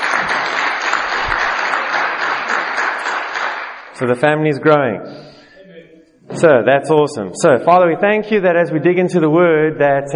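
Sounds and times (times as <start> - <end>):
church congregation applause congratulating couples: 0.0 - 4.0
speech: 4.0 - 5.3, 6.4 - 10.1.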